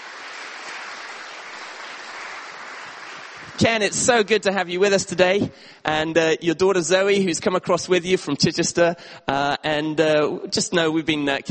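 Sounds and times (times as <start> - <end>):
audience round of applause: 0.0 - 4.0
speech: 3.6 - 11.4.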